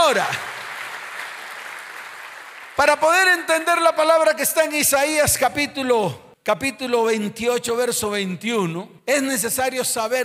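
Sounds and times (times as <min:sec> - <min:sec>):
audience applause: 0:00.0 - 0:03.1
speech: 0:00.1 - 0:00.5, 0:02.8 - 0:10.2.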